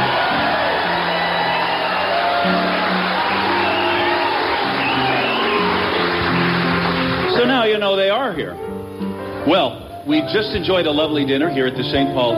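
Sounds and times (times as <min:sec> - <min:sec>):
live evening audience in St. Paul cheering: 0:00.0 - 0:07.5
speech: 0:07.6 - 0:08.6, 0:09.5 - 0:12.3.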